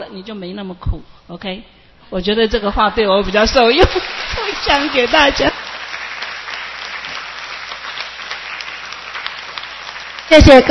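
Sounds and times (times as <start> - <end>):
speech: 0.0 - 5.6, 10.3 - 10.6
audience applause: 3.3 - 10.6.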